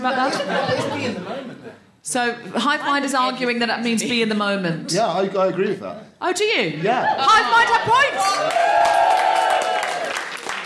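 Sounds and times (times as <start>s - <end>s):
laughter: 0.0s - 1.8s
speech: 0.0s - 9.0s
audience cheering: 7.0s - 10.6s
audience applause: 8.1s - 10.6s.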